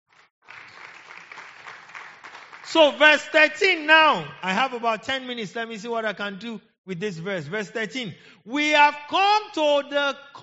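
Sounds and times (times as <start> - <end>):
church congregation applauding in praise of Jesus during a sermon: 0.1 - 4.2
speech: 2.7 - 10.4.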